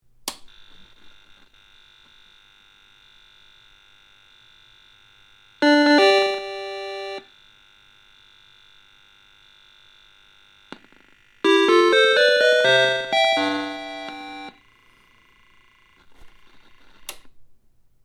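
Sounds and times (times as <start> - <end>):
Vectrex startup sound: 5.6 - 7.2, 11.5 - 14.5.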